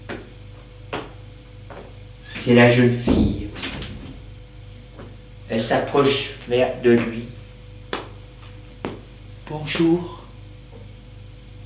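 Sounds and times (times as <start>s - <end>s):
door opening: 2.0s - 4.4s
speech: 2.4s - 3.4s, 5.5s - 7.4s, 9.5s - 10.2s.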